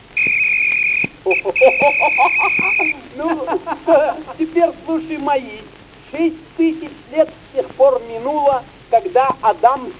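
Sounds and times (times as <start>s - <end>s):
whistle being blown: 0.1s - 3.0s
laughter: 1.2s - 4.7s
speech: 1.3s - 9.9s.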